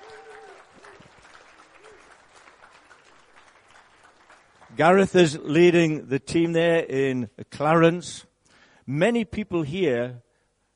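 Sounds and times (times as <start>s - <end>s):
audience clapping to welcome a speaker to the stage: 0.0s - 5.1s
speech: 4.8s - 8.3s, 8.9s - 10.2s.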